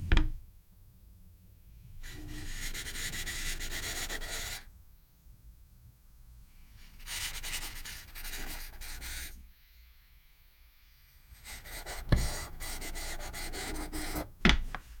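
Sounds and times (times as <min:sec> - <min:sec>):
chalk sliding on board: 0:02.0 - 0:04.6, 0:07.0 - 0:09.4, 0:11.4 - 0:14.3.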